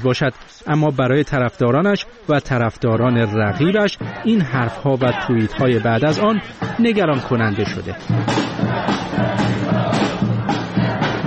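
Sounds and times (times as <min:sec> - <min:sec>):
speech: 0:00.0 - 0:10.2
crowd of supporters chanting at a rally: 0:02.5 - 0:11.2.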